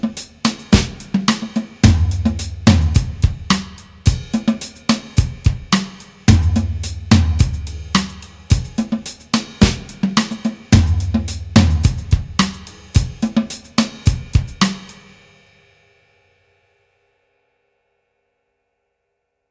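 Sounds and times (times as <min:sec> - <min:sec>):
1970s-style drums: 0:00.0 - 0:15.1.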